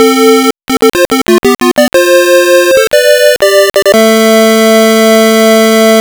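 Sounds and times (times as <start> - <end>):
arcade game start sound: 0.0 - 4.9.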